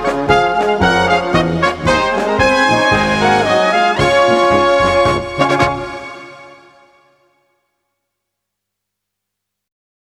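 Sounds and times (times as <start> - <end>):
brass band music: 0.0 - 7.4.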